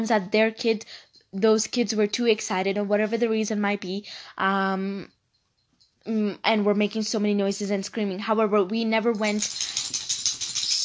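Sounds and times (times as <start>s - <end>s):
speech: 0.0s - 5.2s, 6.0s - 10.0s
dog collar tags jingling and rattling: 9.2s - 10.8s.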